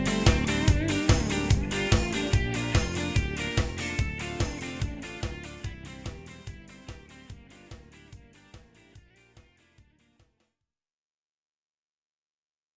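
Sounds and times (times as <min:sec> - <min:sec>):
Latin style guitar: 0:00.0 - 0:10.2.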